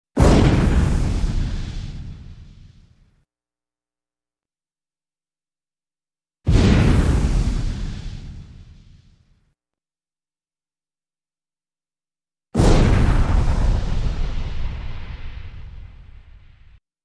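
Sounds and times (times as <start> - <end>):
explosive fire burst for catapults and fireballs: 0.2 - 3.0, 6.5 - 9.3, 12.6 - 16.8.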